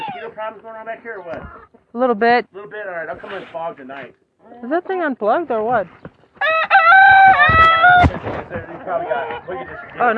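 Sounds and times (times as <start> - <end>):
chickens clucking: 0.0 - 0.6, 6.4 - 10.1
speech: 0.4 - 6.7, 7.3 - 10.1
rooster crowing: 6.4 - 8.2.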